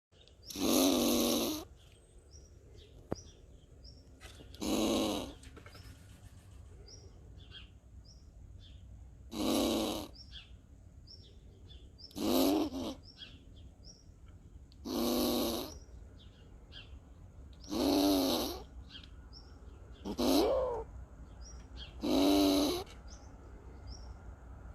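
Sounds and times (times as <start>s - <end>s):
birds chirping: 0.1s - 24.7s
squirrel growling: 0.4s - 1.7s, 4.4s - 5.5s, 9.2s - 10.5s, 12.0s - 13.4s, 14.8s - 16.0s, 17.6s - 19.1s, 19.9s - 21.0s, 21.7s - 23.2s.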